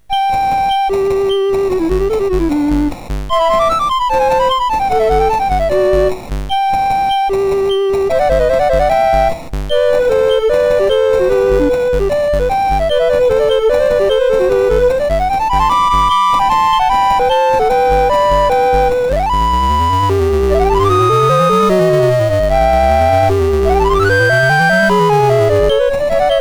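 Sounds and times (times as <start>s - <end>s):
MOS6581 chiptune duet: 0.1s - 26.3s.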